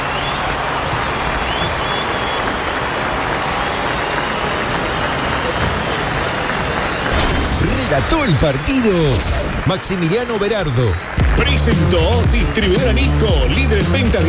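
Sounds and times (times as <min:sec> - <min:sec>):
stadium crowd applause: 0:00.0 - 0:14.2
speech: 0:08.0 - 0:14.2.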